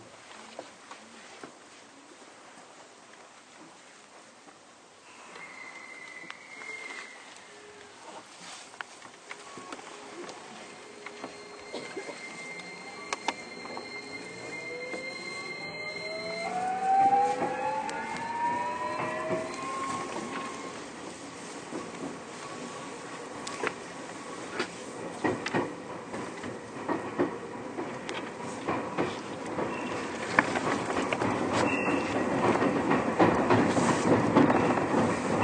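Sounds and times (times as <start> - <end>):
Keio 1000 series train running roar: 9.7 - 35.4
Keio 1000 series train motor whining: 10.6 - 21.2.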